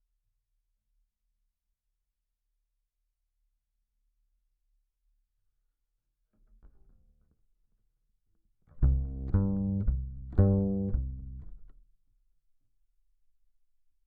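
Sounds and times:
bass guitar recorded by direct input: 8.7 - 11.8.

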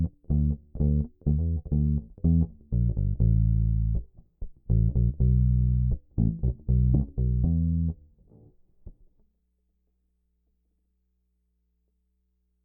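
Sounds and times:
bass guitar recorded by direct input: 0.0 - 9.1.

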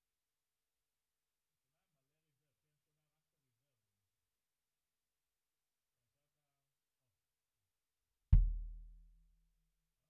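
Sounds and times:
bass drum hit: 8.4 - 8.8.

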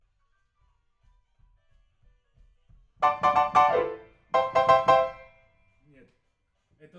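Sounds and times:
rock and roll piano: 3.0 - 5.3.

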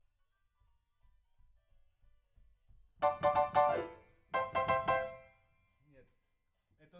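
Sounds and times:
rock and roll piano: 3.0 - 5.3.

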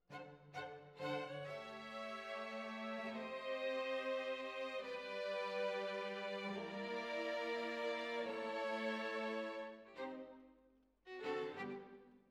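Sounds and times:
violins: 0.0 - 10.5, 11.1 - 12.2.

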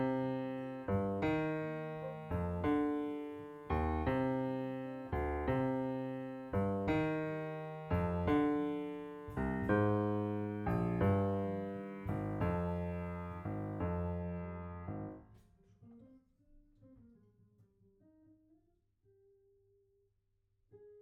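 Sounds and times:
piano note B: 0.0 - 15.2.

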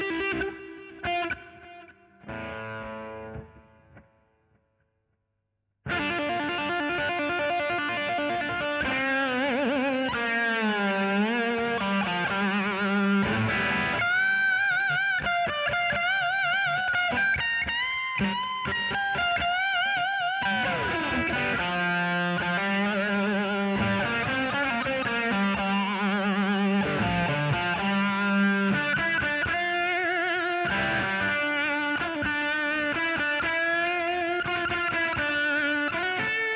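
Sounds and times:
guitar solo: 0.0 - 4.1, 5.9 - 36.5.

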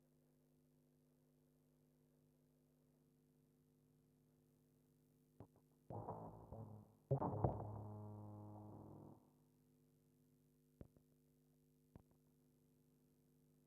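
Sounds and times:
bass guitar recorded by direct input: 5.9 - 9.2.

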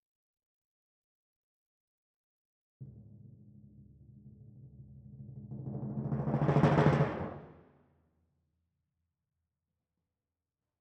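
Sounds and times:
timpani: 2.8 - 7.6.

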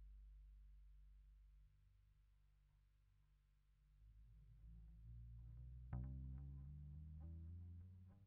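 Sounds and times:
bass amp: 4.5 - 8.2.

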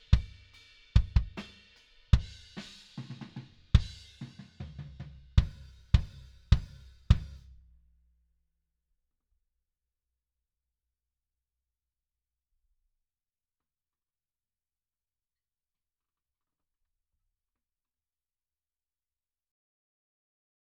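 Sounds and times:
kick drum: 0.1 - 0.4, 1.0 - 1.4, 3.8 - 4.0, 4.6 - 7.5.

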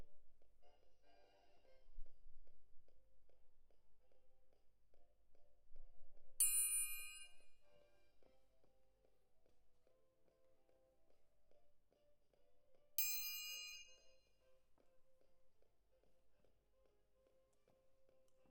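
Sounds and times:
close percussion: 6.4 - 7.8, 13.0 - 14.2.

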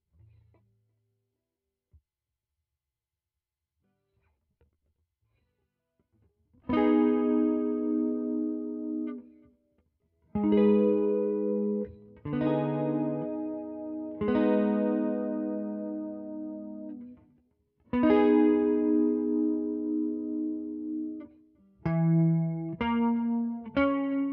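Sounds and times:
guitar: 5.2 - 24.3.

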